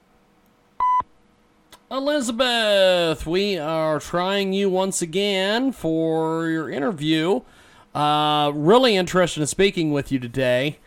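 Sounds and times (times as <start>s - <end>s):
voicemail beep: 0.8s - 1.1s
speech: 1.9s - 10.8s.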